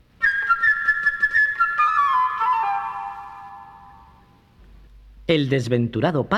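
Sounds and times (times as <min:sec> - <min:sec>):
light trilling flute melody: 0:00.2 - 0:04.5
speech: 0:05.3 - 0:06.3.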